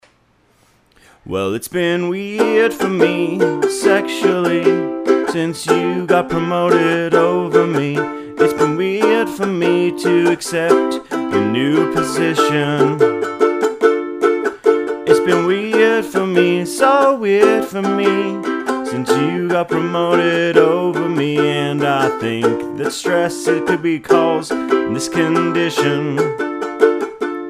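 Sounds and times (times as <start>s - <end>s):
ukulele: 1.7s - 27.4s.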